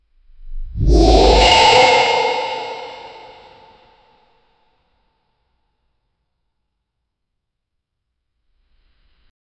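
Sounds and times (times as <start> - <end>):
dragon roar: 0.8 - 3.7.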